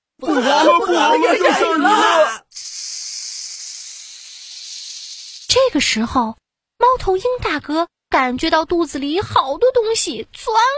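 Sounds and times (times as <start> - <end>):
laughter: 0.2 - 2.3
speech: 0.2 - 2.7, 5.6 - 10.7
snakes hissing: 2.5 - 5.5.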